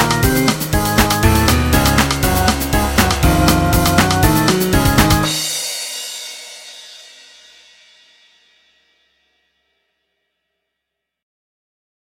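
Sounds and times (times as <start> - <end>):
horror intro music: 0.8 - 5.6.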